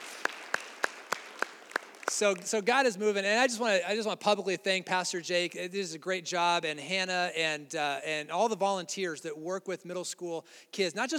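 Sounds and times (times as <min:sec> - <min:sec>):
slow rhythmic clapping: 0:00.0 - 0:02.8
speech: 0:02.2 - 0:11.1.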